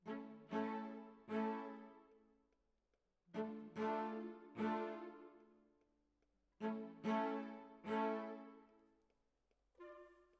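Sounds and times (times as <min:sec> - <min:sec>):
cellos playing: 0:00.0 - 0:02.2, 0:03.3 - 0:05.5, 0:06.6 - 0:08.8.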